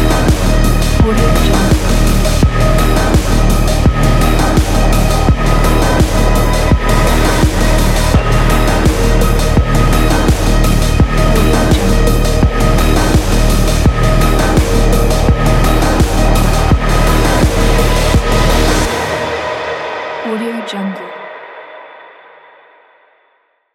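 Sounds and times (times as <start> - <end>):
dark ambient industrial music: 0.0 - 22.0.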